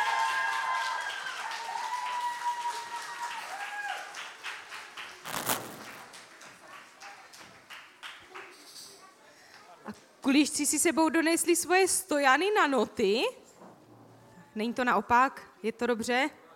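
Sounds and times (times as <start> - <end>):
audience applause: 0.0 - 8.5
speech: 9.9 - 13.4, 14.6 - 16.4.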